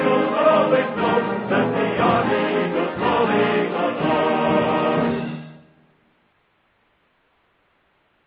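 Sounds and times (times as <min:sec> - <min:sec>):
army song band and chorus: 0:00.0 - 0:05.8.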